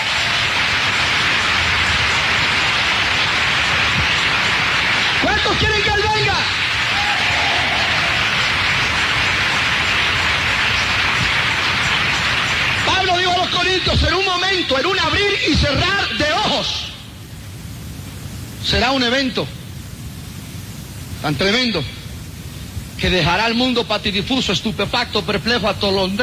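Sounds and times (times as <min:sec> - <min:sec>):
audience applause: 0:00.0 - 0:13.9
speech: 0:13.8 - 0:16.9, 0:18.7 - 0:19.6, 0:21.2 - 0:22.0, 0:23.0 - 0:26.2.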